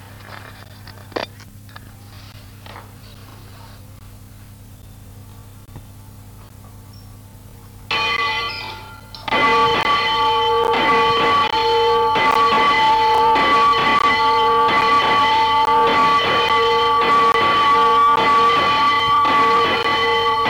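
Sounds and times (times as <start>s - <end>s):
bell: 7.9s - 20.4s.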